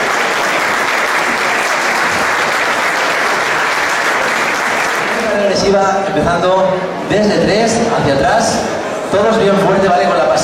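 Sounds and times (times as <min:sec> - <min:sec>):
audience applause: 0:00.0 - 0:05.7
speech: 0:05.6 - 0:10.4.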